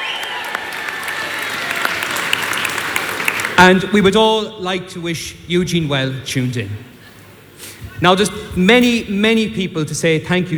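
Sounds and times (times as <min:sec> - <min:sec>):
audience applause: 0:00.0 - 0:03.6
speech: 0:03.6 - 0:06.9, 0:08.0 - 0:10.5.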